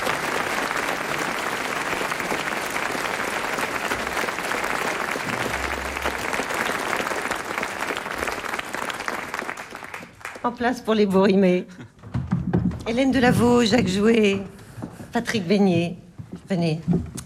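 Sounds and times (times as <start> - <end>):
audience applause: 0.0 - 10.6
speech: 10.5 - 11.9, 12.9 - 17.1.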